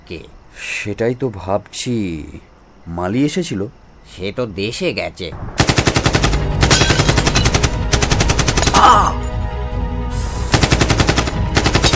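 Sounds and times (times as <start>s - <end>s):
speech: 0.1s - 5.7s, 8.8s - 9.2s
machine-gun fire in a Bengali drama: 5.6s - 8.8s, 10.5s - 11.9s.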